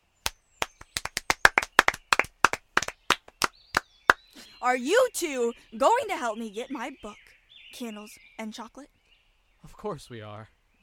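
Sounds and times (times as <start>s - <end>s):
hands clapping: 0.2s - 4.2s
speech: 4.6s - 9.0s, 9.6s - 10.6s.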